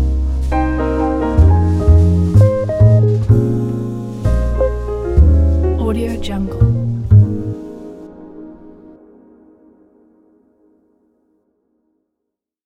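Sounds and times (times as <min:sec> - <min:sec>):
jazz music: 0:00.0 - 0:09.0.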